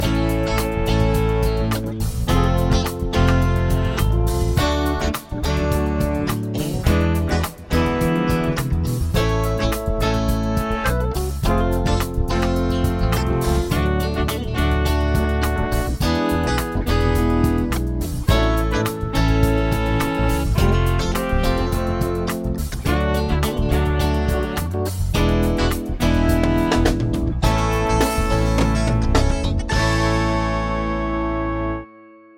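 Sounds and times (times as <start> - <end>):
chord progression with mixture: 0.0 - 32.3.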